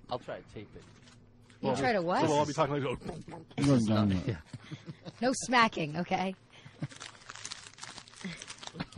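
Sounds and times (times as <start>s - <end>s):
speech: 0.1s - 7.1s
plastic bag of M&M's candies being squeezed and crushed: 6.8s - 8.9s.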